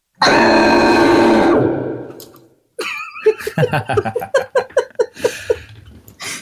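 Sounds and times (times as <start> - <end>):
loud booming roar: 0.2 - 2.2
choppy rhythmic laughter: 2.8 - 5.7.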